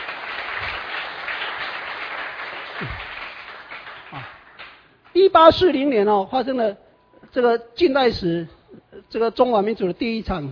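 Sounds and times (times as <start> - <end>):
audience applause: 0.0 - 4.8
speech: 2.8 - 3.1, 5.2 - 10.5.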